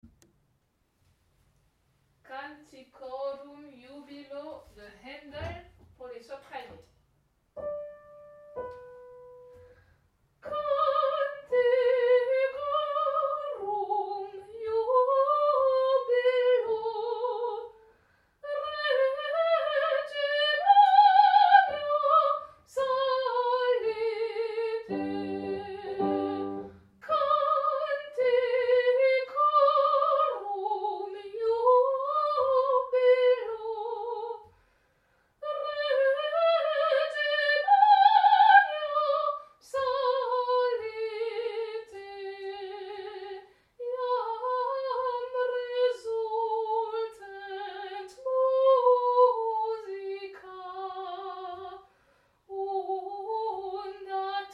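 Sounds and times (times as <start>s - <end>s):
soprano singing: 10.4s - 17.8s, 18.4s - 34.4s, 35.4s - 51.8s, 52.5s - 54.5s.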